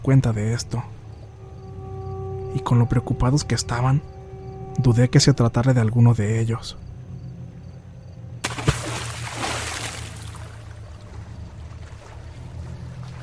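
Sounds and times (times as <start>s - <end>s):
speech: 0.0s - 1.0s, 2.5s - 4.1s, 4.8s - 6.9s
low steady hum: 0.0s - 13.2s
water splashing of someone swimming in river: 8.4s - 13.2s.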